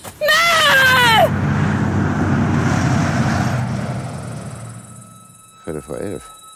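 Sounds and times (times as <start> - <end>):
bus driving away: 0.8 - 5.6
speech: 5.7 - 6.4.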